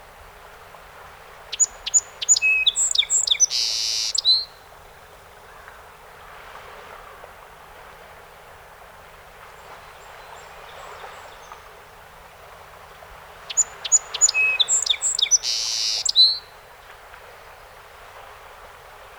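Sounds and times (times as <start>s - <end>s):
song sparrow song: 1.4s - 4.6s, 12.9s - 16.6s.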